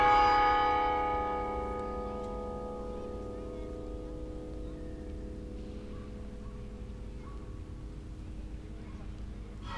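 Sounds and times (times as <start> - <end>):
carillon music: 0.0 - 7.2.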